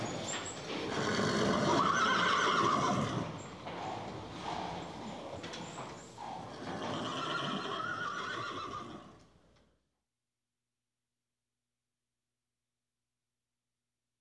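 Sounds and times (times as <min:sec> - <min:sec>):
horses in a stable: 0:00.0 - 0:09.9.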